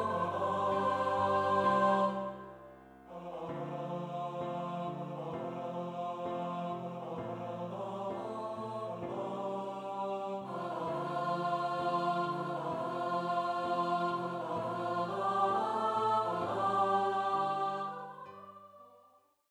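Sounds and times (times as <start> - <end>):
vocal duet for treble and tenor voices: 0.0 - 19.1.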